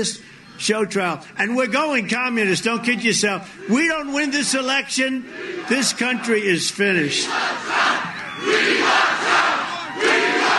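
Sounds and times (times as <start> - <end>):
speech: 0.0 - 9.0
boisterous rally crowd cheering and shouting: 3.7 - 10.5.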